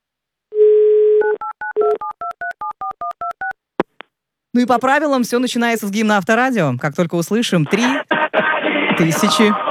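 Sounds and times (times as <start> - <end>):
telephone dial tone: 0.5 - 2.0
speech: 4.5 - 8.1, 9.0 - 9.6.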